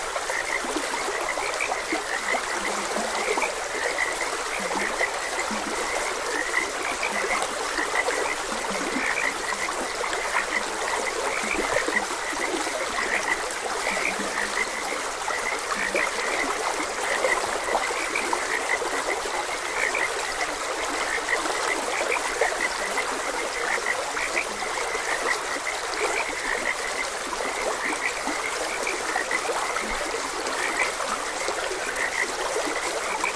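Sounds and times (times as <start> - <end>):
frogs croaking: 0.0 - 33.3
stream water trickling: 0.0 - 33.3.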